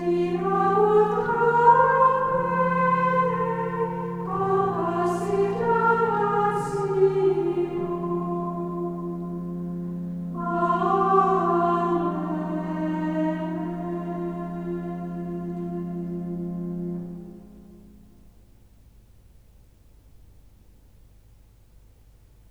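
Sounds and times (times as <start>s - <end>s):
gregorian chant hymn: 0.0s - 17.5s.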